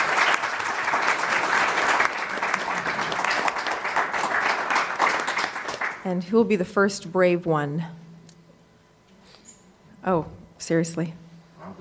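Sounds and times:
room full of people applauding: 0.0 - 6.1
speech: 6.0 - 8.0, 10.0 - 11.7.

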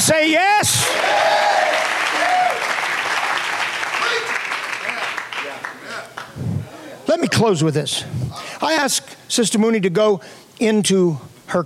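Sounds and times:
speech: 0.1 - 1.3, 7.1 - 11.6
church audience clapping hands: 0.8 - 6.4.

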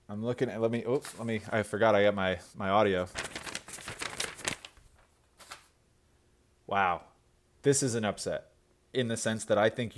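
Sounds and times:
speech: 0.1 - 3.8, 6.7 - 9.9
envelope being opened, paper crackling and tearing: 3.1 - 5.8.

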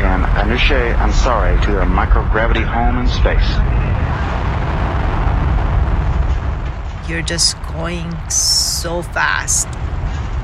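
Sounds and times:
Soyuz rocket liftoff roar: 0.0 - 10.4
speech: 0.5 - 3.8, 7.1 - 9.9.

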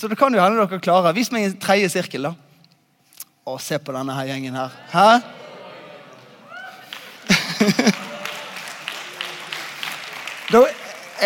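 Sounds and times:
speech: 0.0 - 2.5, 3.4 - 5.4, 7.6 - 8.1, 10.5 - 11.2
laughter: 4.7 - 10.0
crowd audience applause: 6.5 - 11.2.

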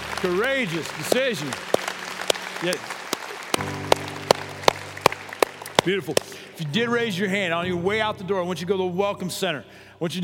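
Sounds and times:
audience applause: 0.0 - 6.7
speech: 0.2 - 1.8, 2.6 - 2.9, 5.8 - 10.2.

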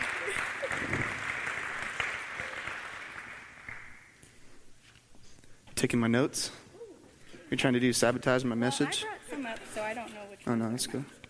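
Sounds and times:
audience applause: 0.0 - 4.2
speech: 5.8 - 6.6, 7.5 - 11.2.

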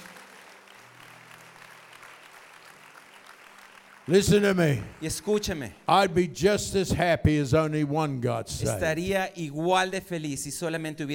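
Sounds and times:
audience applause: 0.0 - 6.2
speech: 4.1 - 11.1.

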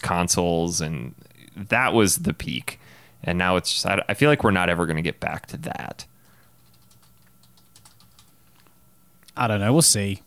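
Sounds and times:
speech: 0.0 - 6.1, 9.4 - 10.2
typing on a computer keyboard: 6.2 - 8.3.

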